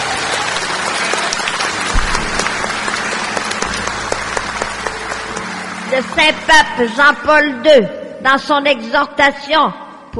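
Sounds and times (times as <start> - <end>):
audience applauding: 0.0 - 6.8
speech: 6.0 - 10.1.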